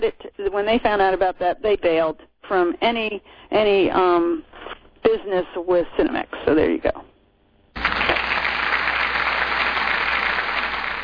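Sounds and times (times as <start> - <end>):
speech: 0.0 - 4.5, 5.1 - 7.1
audience applause: 7.8 - 11.0.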